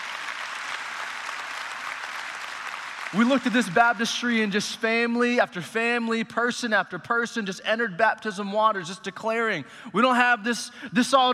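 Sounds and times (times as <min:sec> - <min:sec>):
audience applauding: 0:00.0 - 0:04.4
speech: 0:03.1 - 0:11.3.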